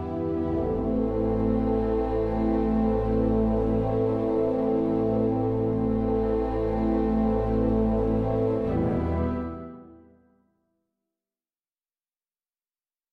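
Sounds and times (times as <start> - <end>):
strings: 0.0 - 10.0.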